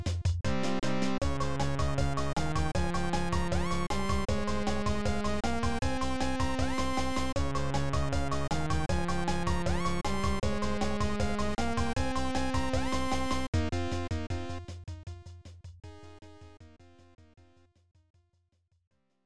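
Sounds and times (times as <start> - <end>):
level game music: 0.5 - 14.6.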